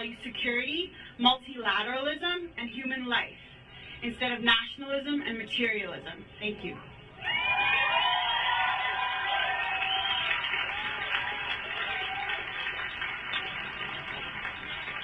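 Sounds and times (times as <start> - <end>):
speech: 0.0 - 7.5
audience applause after a speech: 7.3 - 15.0.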